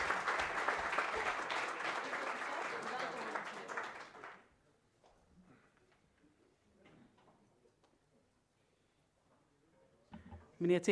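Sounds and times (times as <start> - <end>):
applause after a council member's swearing-in: 0.0 - 4.5.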